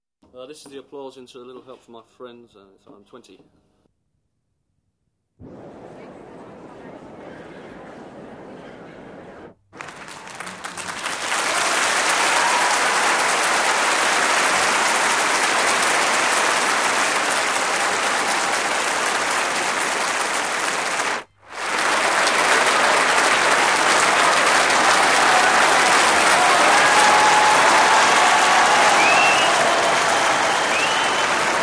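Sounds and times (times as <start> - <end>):
applause: 9.7 - 31.6.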